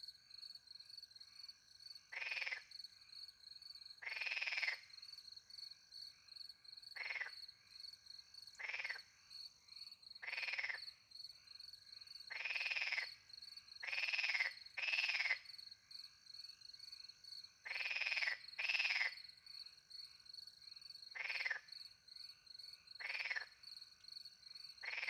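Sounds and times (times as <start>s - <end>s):
cricket chorus: 0.0s - 25.0s
frog croaking: 2.1s - 2.7s, 4.0s - 4.9s, 7.0s - 7.4s, 8.6s - 9.2s, 10.2s - 10.9s, 12.3s - 13.2s, 13.8s - 15.5s, 17.6s - 19.3s, 21.1s - 21.7s, 23.0s - 23.6s, 24.8s - 25.0s.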